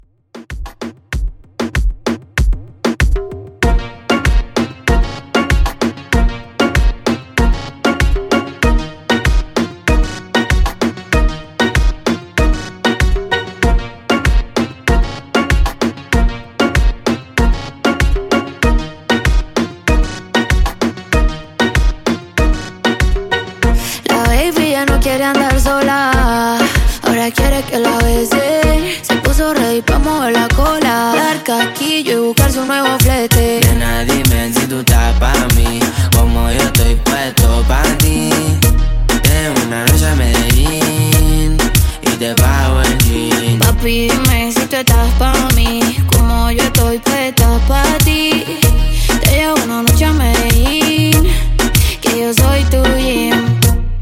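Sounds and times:
reggaeton beat at 96 BPM: 0:00.0 - 0:54.0.

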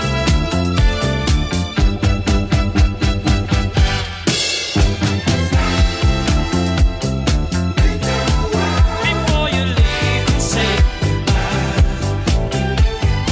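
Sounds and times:
1970s drum machine beat: 0:00.0 - 0:13.2.

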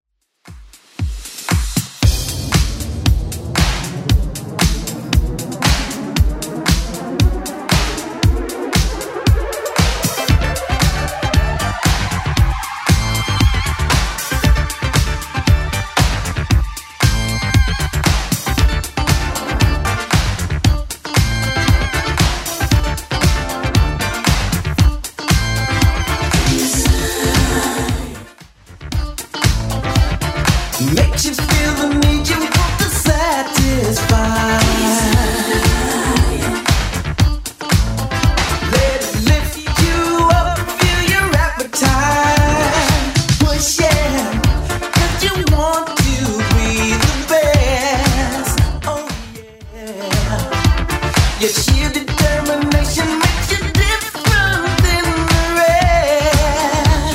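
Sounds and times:
80s club edit dance music at 116 bpm: 0:00.5 - 0:57.1.

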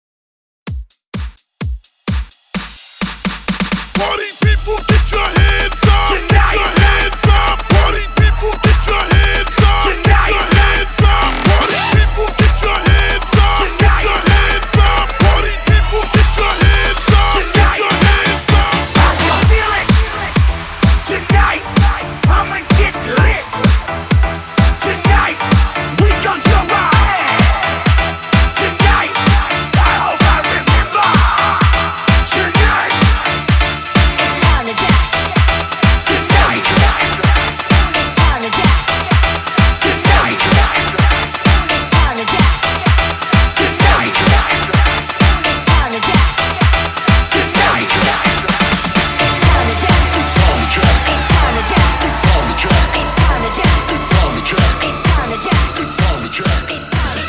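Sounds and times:
dancehall music at 128 BPM: 0:00.8 - 0:57.2.

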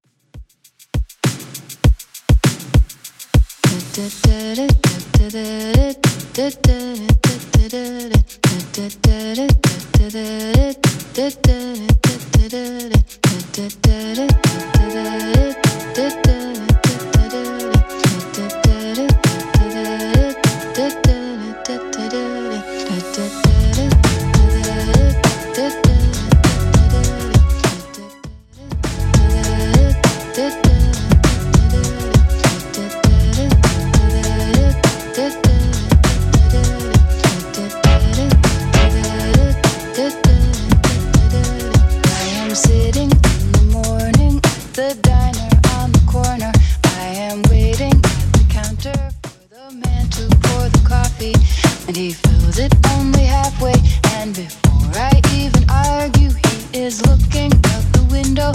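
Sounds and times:
90s style beat at 100 bpm: 0:00.3 - 0:21.3, 0:23.0 - 0:58.5.

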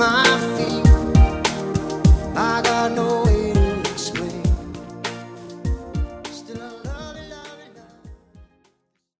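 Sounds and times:
classic Redrum drum beat: 0:00.9 - 0:04.8, 0:05.7 - 0:06.2.

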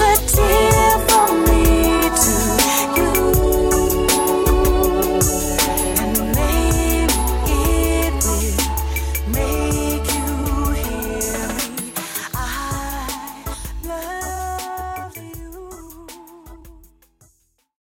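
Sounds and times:
80s pop reggae music: 0:00.0 - 0:17.2.

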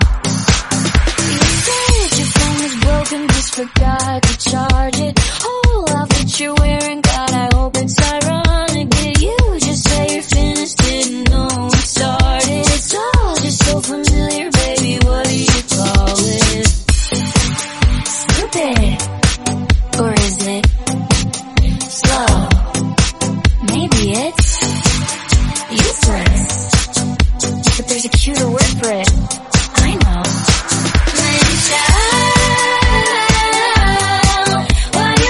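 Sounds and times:
pop club mix: 0:00.0 - 0:35.2.

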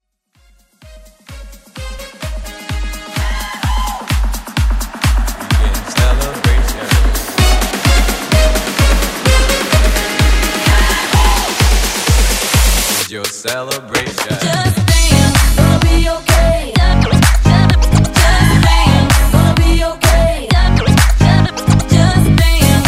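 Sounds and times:
house music mashup: 0:00.1 - 0:22.8.

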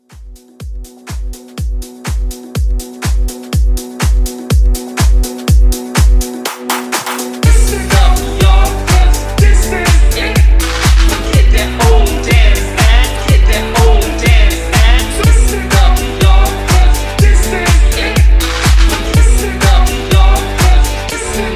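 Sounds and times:
house music: 0:00.0 - 0:21.5.

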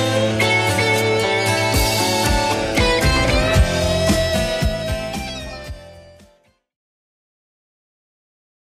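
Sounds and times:
1970s style music at 114 bpm: 0:00.0 - 0:06.7.

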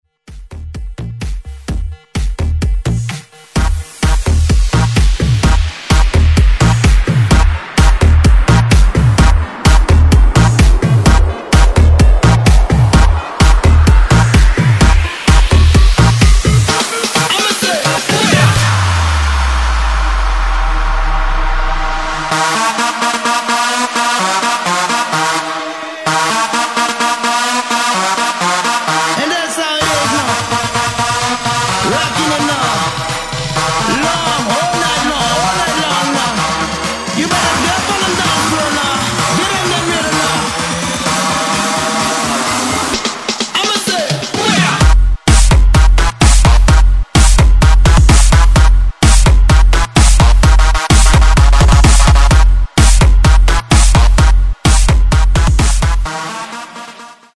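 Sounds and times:
breakbeat mix: 0:00.2 - 0:57.2.

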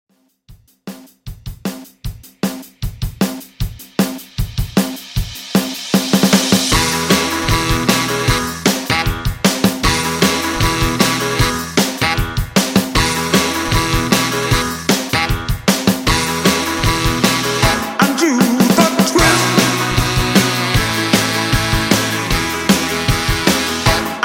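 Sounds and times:
60s dance drum loop: 0:00.5 - 0:24.2.

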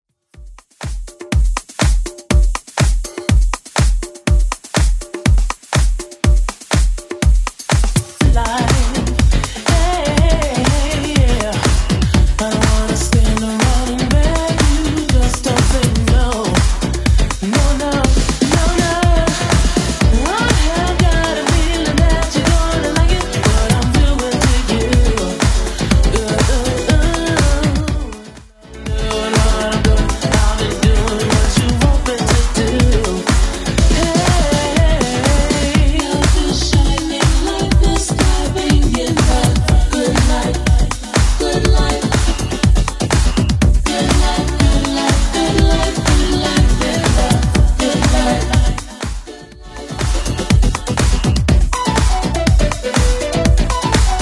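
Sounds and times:
1980s club music at 122 bpm: 0:00.3 - 0:54.2.

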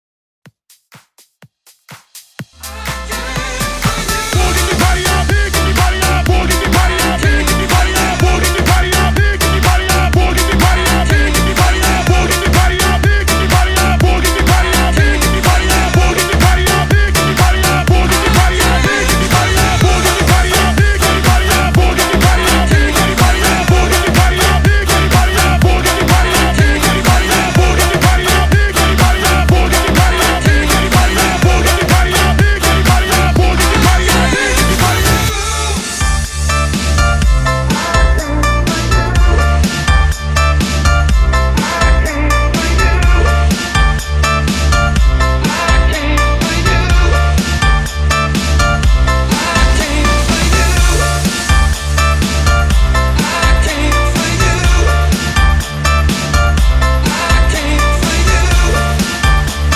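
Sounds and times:
house music mix: 0:01.7 - 0:59.7.

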